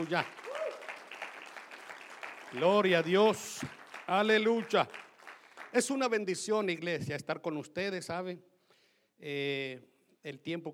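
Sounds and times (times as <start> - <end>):
speech: 0.0 - 0.4, 2.5 - 5.0, 5.7 - 8.5, 9.2 - 10.7
audience applause: 0.0 - 5.9.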